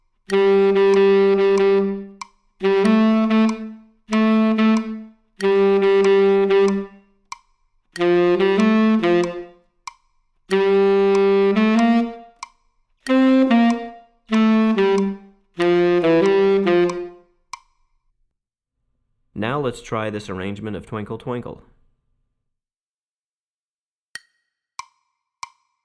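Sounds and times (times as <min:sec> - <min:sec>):
tenor saxophone: 0:00.0 - 0:07.2, 0:08.0 - 0:09.7, 0:10.5 - 0:12.4, 0:13.0 - 0:17.4.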